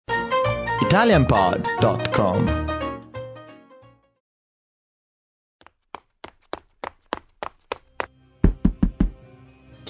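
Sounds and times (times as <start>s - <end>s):
speech: 0.8s - 2.7s
knocking on a door: 8.4s - 9.2s.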